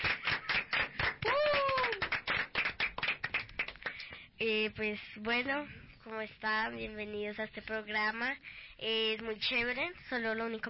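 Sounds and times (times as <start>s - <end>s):
applause: 0.0s - 4.2s
speech: 4.4s - 10.6s.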